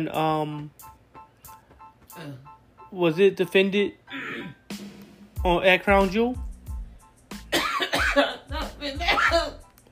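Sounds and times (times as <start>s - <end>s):
speech: 0.0s - 1.0s, 2.2s - 4.8s, 5.4s - 6.5s, 8.2s - 8.4s
woman choking and coughing: 7.5s - 9.5s.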